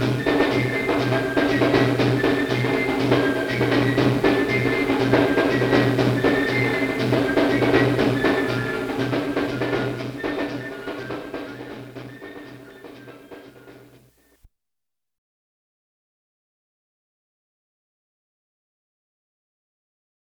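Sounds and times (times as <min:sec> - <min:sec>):
John Canoe festival music: 0:00.0 - 0:14.0.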